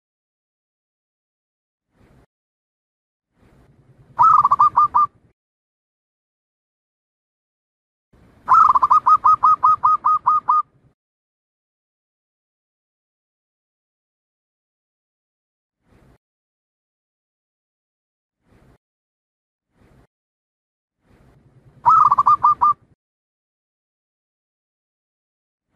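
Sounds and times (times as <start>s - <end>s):
Zebra dove staccato cooing song: 4.2s - 5.1s, 8.5s - 10.7s, 21.8s - 22.8s.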